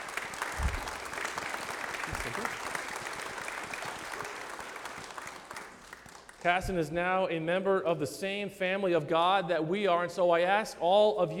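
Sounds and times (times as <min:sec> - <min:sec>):
audience clapping: 0:00.0 - 0:06.8
speech: 0:06.4 - 0:11.3.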